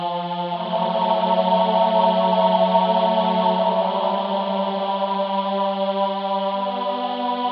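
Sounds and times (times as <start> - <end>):
tenor singing in training: 0.2 - 7.4.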